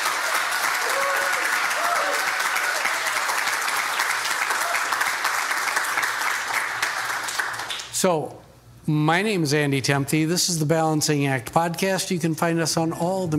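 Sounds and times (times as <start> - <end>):
audience round of applause: 0.0 - 7.9
speech: 8.0 - 13.3.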